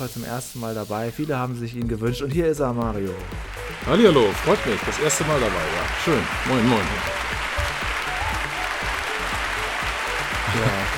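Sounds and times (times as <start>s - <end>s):
speech: 0.0s - 7.2s
voice imitating crowd applause: 3.3s - 10.9s
laughter: 10.4s - 10.9s.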